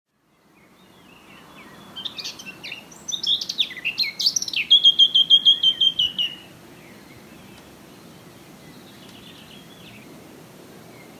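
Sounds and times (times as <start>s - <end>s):
Eurasian blackcap warbling song: 0.3s - 10.1s.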